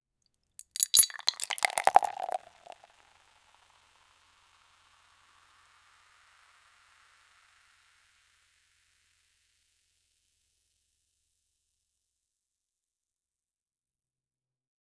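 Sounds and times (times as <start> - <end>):
beer bottle opening: 0.6 - 2.8.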